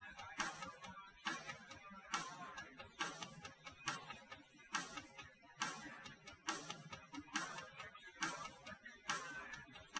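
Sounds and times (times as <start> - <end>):
live recorded drums: 0.0 - 9.9.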